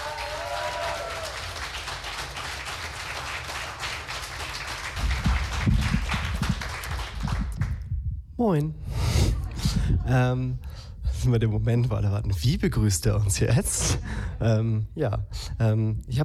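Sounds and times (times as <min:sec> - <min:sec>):
audience applause: 0:00.0 - 0:07.8
speech: 0:08.4 - 0:08.9, 0:10.0 - 0:16.2.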